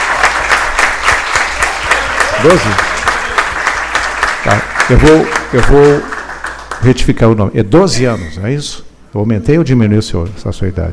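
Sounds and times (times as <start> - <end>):
audience applause for young performers at a gaucho traditions center event: 0.0 - 7.0
speech: 2.4 - 2.9, 4.4 - 6.2, 6.8 - 10.9.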